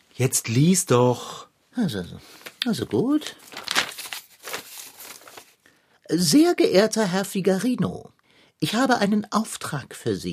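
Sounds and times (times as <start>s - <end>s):
speech: 0.2s - 3.7s, 6.1s - 10.3s
paper letter being crumpled: 2.3s - 5.7s.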